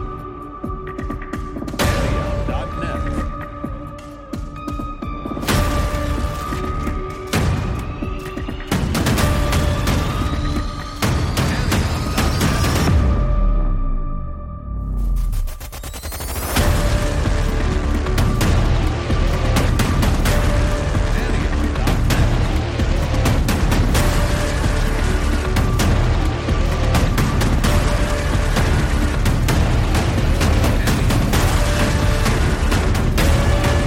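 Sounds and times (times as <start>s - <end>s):
modern horror trailer music: 0.0s - 33.8s.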